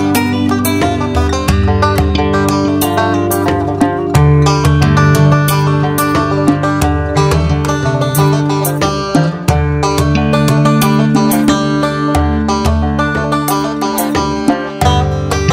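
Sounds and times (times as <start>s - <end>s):
banjo playing country pop: 0.0s - 15.5s.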